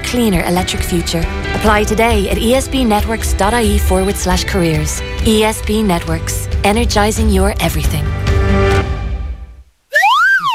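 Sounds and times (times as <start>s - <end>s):
speech: 0.1s - 8.7s
new slide whistle gliding up and down: 9.9s - 10.5s.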